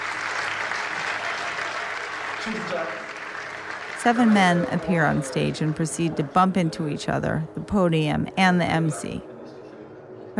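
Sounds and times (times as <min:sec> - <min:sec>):
ferocious applause from an awards audience: 0:00.0 - 0:06.2
speech: 0:02.4 - 0:03.1, 0:04.0 - 0:09.3.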